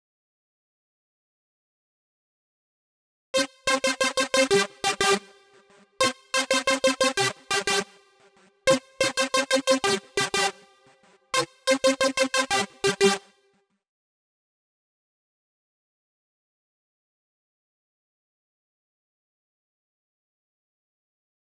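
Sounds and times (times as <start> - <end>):
synth: 3.4 - 13.3.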